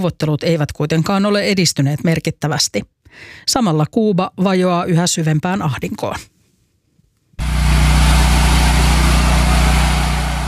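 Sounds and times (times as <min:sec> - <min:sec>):
speech: 0:00.0 - 0:06.3
electric generator humming in Havana: 0:07.4 - 0:10.4.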